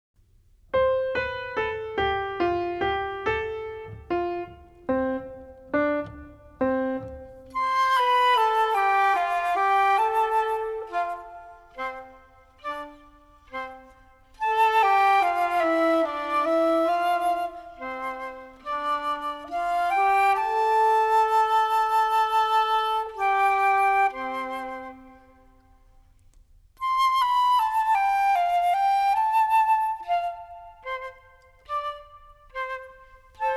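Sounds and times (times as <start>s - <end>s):
music: 0.2s - 33.5s.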